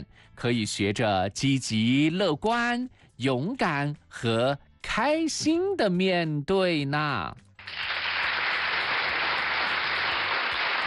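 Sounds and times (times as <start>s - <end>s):
speech: 0.1s - 7.9s
applause: 7.6s - 10.8s.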